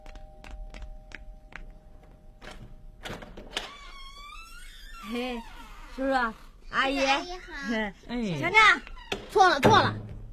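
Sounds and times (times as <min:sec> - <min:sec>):
door swinging open for an arriving visitor: 0:02.4 - 0:06.6, 0:08.6 - 0:10.0
speech: 0:05.1 - 0:10.0.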